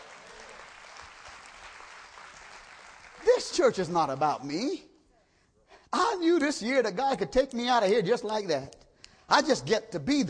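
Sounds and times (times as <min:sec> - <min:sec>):
audience clapping: 0:00.0 - 0:04.4
speech: 0:03.4 - 0:04.9, 0:05.9 - 0:10.2.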